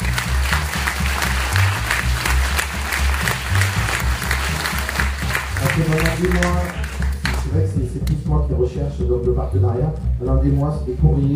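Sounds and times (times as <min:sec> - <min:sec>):
audience applause: 0:00.0 - 0:07.5
speech: 0:06.2 - 0:06.8, 0:07.6 - 0:11.3.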